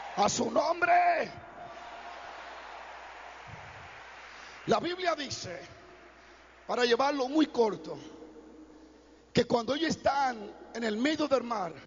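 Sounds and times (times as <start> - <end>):
speech: 0.2 - 1.5, 4.7 - 5.8, 6.7 - 8.2, 9.4 - 11.8
audience applauding: 1.6 - 7.2.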